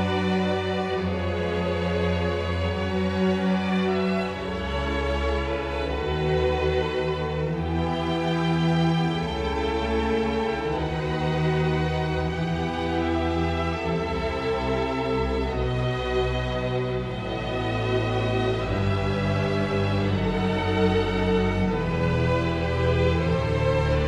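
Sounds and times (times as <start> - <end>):
sinfonia: 0.0 - 24.0.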